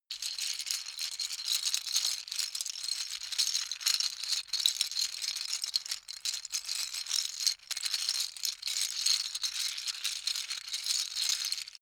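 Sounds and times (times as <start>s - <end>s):
Lego bricks being handled: 0.2s - 11.8s.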